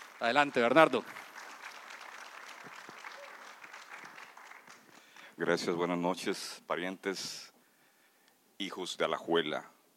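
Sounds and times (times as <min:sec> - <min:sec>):
audience applause: 0:00.0 - 0:05.3
speech: 0:00.2 - 0:01.2, 0:05.4 - 0:07.5, 0:08.6 - 0:09.8.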